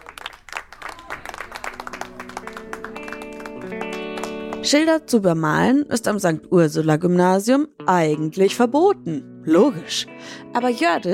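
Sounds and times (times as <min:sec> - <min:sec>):
students clapping applause: 0:00.0 - 0:04.7
speech: 0:04.6 - 0:11.1.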